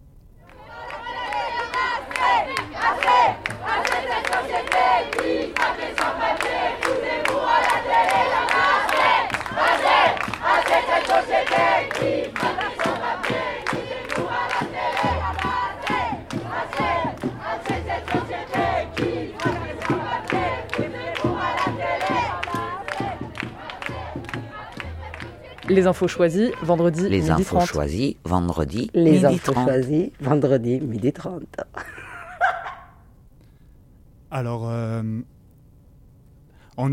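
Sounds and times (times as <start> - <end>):
protest crowd shouting and chanting: 0.5 - 25.7
sharp rhythmic beats: 2.2 - 27.7
deep booming pulses: 14.8 - 26.2
speech: 25.8 - 31.6, 34.4 - 35.3
laughter: 31.8 - 32.9.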